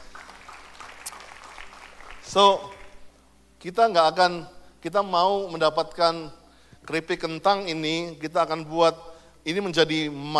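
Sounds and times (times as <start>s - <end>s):
audience applause: 0.0s - 2.9s
speech: 2.3s - 2.7s, 3.6s - 10.3s.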